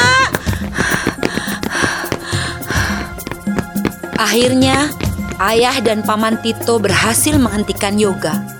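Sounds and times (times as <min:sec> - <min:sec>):
heavy panting after running: 0:00.1 - 0:04.2
speech: 0:04.2 - 0:08.5.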